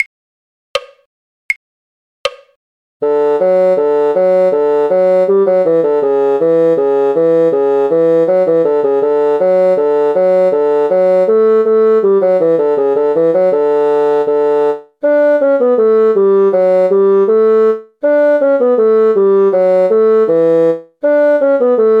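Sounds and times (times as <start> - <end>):
bassoon: 3.0 - 21.9.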